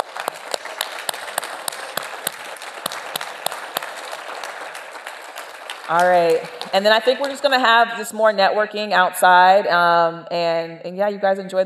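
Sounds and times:
standing audience applause: 0.0s - 7.7s
speech: 5.9s - 11.6s.

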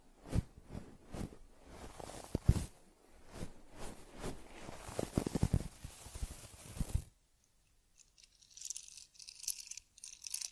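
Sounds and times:
teddy bear's fur being groomed: 0.2s - 7.1s.

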